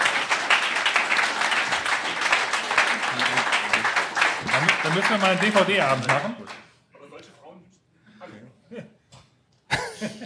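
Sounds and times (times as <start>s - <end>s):
crowd applauding: 0.0s - 6.7s
speech: 4.9s - 6.5s.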